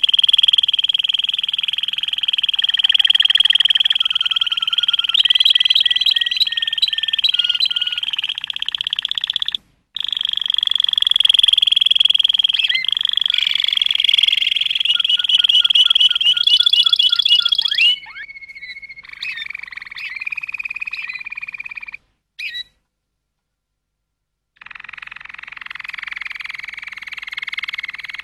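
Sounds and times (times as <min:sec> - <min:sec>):
Waterslager canary song: 0:00.0 - 0:22.8, 0:24.6 - 0:28.2.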